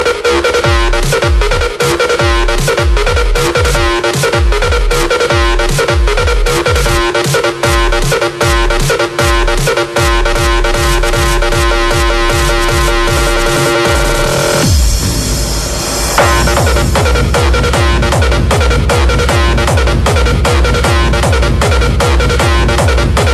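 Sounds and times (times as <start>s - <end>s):
techno music: 0.0s - 23.3s.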